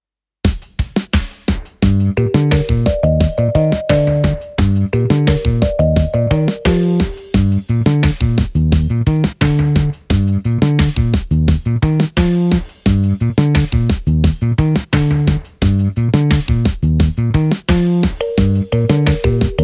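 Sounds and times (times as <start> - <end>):
instrumental music: 1.6 - 19.6.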